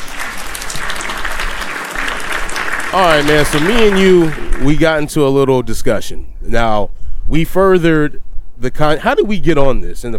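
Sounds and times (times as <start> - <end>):
audience applause: 0.0 - 5.0
speech: 2.9 - 10.1.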